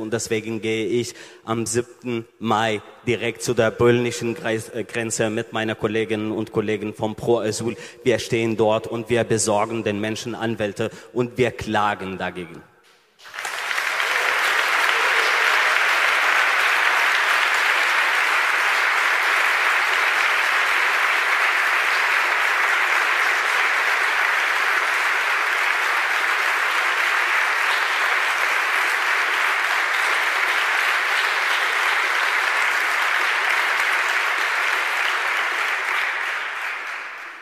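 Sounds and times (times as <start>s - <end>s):
speech: 0.0s - 13.4s
audience applause: 13.2s - 37.3s.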